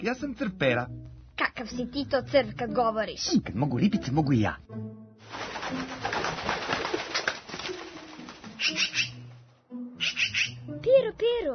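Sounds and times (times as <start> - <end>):
speech: 0.0 - 6.0, 8.6 - 9.1, 10.0 - 11.5
wings flapping: 5.2 - 9.2
magpie chattering: 8.5 - 9.2, 10.0 - 10.7.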